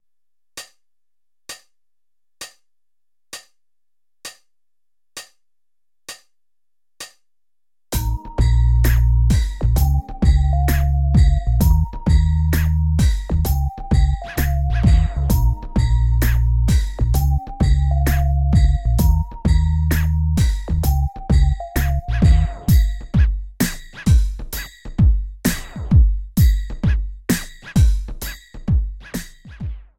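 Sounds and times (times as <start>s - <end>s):
shuffled hip hop beat: 8.0s - 29.9s.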